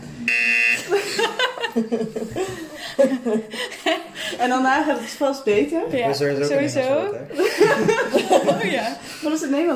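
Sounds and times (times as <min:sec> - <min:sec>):
game show buzzer: 0:00.2 - 0:01.0
people laughing and talking: 0:00.8 - 0:09.7
speech: 0:01.8 - 0:09.7.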